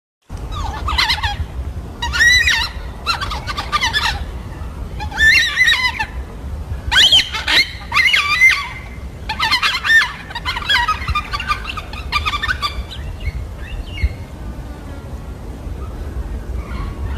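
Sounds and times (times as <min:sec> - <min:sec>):
yellow-tailed black cockatoo squawking: 0:00.5 - 0:06.2, 0:06.8 - 0:14.2.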